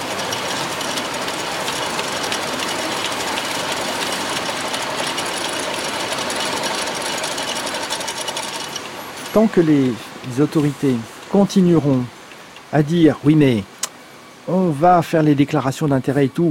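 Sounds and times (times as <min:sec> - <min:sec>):
two tube-making machines on a drug production line rattling: 0:00.0 - 0:12.7
speech: 0:09.4 - 0:13.7, 0:14.5 - 0:16.4.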